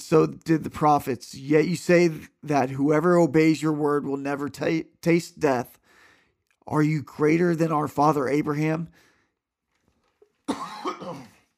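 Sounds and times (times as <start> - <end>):
speech: 0.1 - 5.8, 6.7 - 9.1, 10.5 - 11.2
man coughing from allergies and a tickle in his throat: 10.5 - 11.5.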